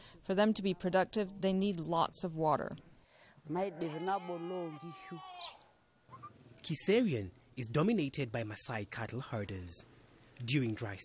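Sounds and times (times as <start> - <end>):
speech: 0.2 - 5.6, 6.6 - 11.0
sheep bleating: 3.6 - 5.7.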